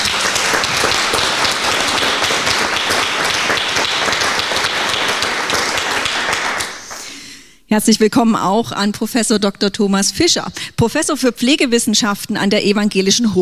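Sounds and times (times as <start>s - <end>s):
audience applauding greeting Petra Köpping at a public event: 0.0s - 7.2s
speech: 7.7s - 13.3s.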